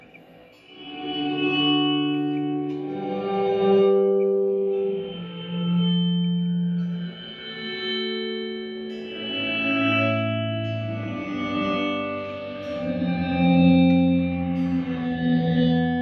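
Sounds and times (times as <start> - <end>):
guitar through a Zoom digital pedal with metallic echo effect: 0.0 - 16.0.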